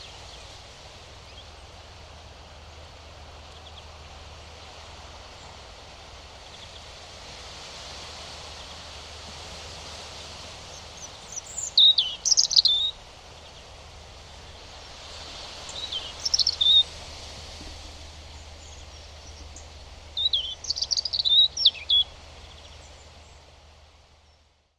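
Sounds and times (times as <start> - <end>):
European robin singing: 10.7 - 13.6, 14.5 - 17.0, 17.7 - 23.4.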